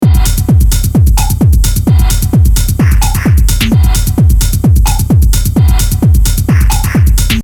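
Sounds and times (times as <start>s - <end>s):
drum loop: 0.0s - 7.4s.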